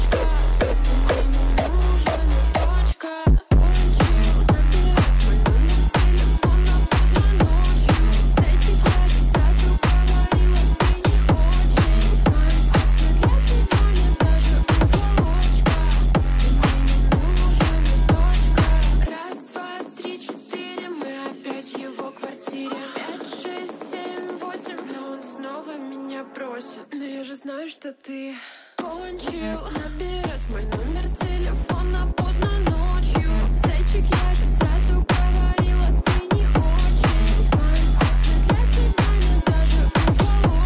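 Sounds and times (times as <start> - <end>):
slowed hardstyle music: 0.0 - 2.9, 3.5 - 20.8, 28.9 - 40.6.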